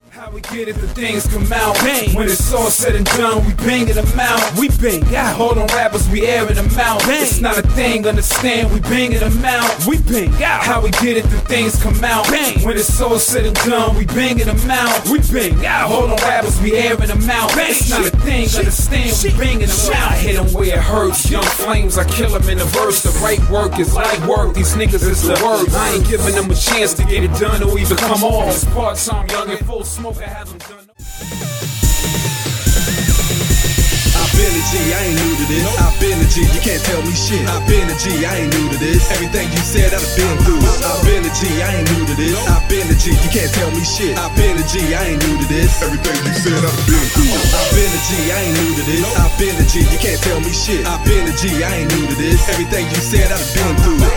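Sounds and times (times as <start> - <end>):
hip hop music: 0.0 - 54.1.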